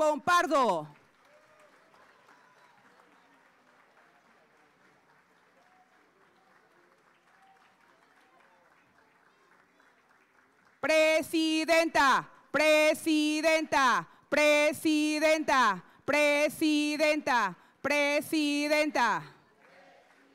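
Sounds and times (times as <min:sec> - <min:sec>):
speech: 0:00.0 - 0:01.0, 0:10.8 - 0:19.3
loud applause from a rally crowd: 0:00.9 - 0:10.8, 0:19.4 - 0:20.3.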